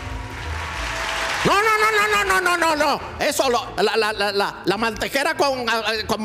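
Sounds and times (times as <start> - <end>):
recorded crowd applause sound effect: 0.0 - 2.5
speech: 1.4 - 6.2.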